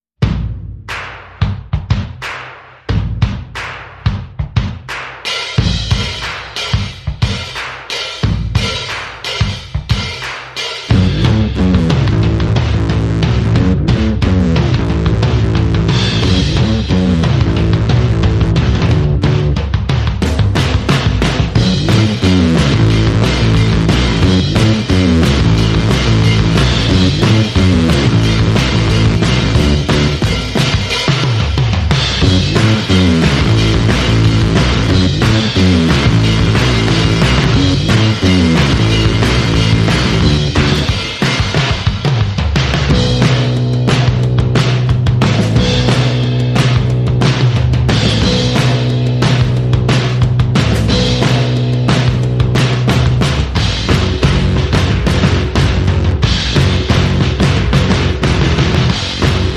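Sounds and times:
bass: 0:00.0 - 0:59.5
drums: 0:00.0 - 0:59.5.

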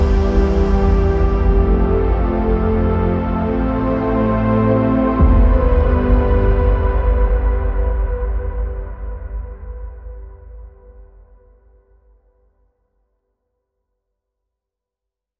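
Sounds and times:
underscore music: 0:00.0 - 0:11.0.

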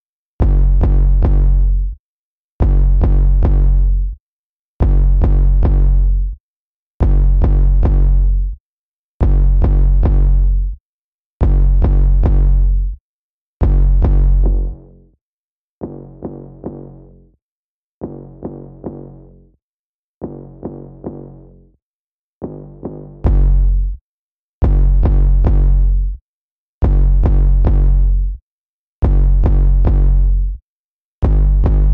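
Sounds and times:
bass: 0:00.0 - 0:02.0, 0:02.6 - 0:04.2, 0:04.8 - 0:06.4, 0:07.0 - 0:08.6, 0:09.2 - 0:10.8, 0:11.4 - 0:13.0, 0:13.6 - 0:15.2, 0:15.8 - 0:17.4, 0:18.0 - 0:19.6, 0:20.2 - 0:21.8, 0:22.4 - 0:24.0, 0:24.6 - 0:26.2, 0:26.8 - 0:28.4, 0:29.0 - 0:30.6, 0:31.2 - 0:31.9.

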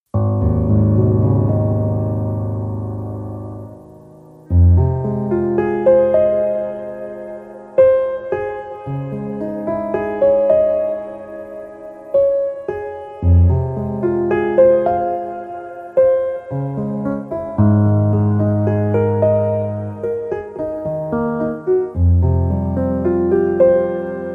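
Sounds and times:
solo piano piece: 0:00.1 - 0:24.3.

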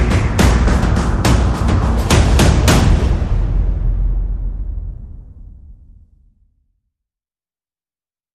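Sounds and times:
percussion pulses: 0:00.0 - 0:05.6.

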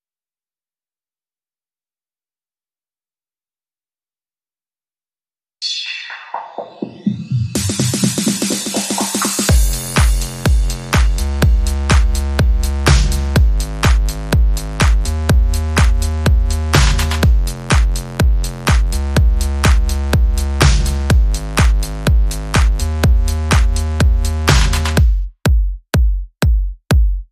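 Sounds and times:
beat and bass music: 0:05.6 - 0:27.3.

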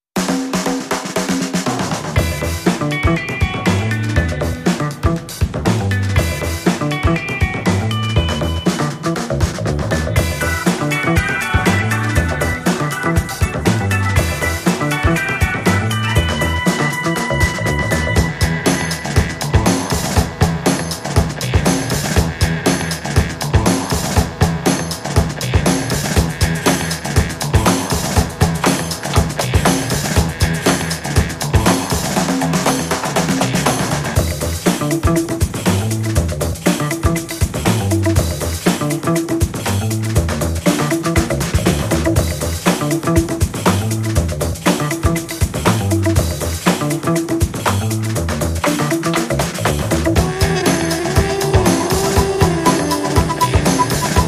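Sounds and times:
rhythm section playing: 0:00.2 - 0:54.2.

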